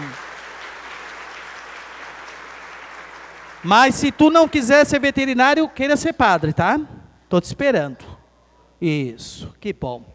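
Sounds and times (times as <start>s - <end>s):
audience applause: 0.0s - 5.0s
speech: 3.6s - 8.2s, 8.8s - 10.1s.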